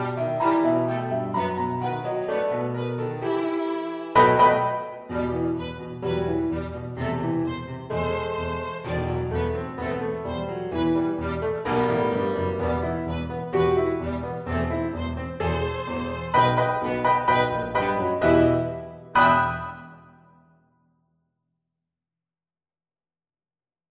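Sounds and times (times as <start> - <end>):
violin: 0.0 - 20.1
piano: 0.0 - 20.6.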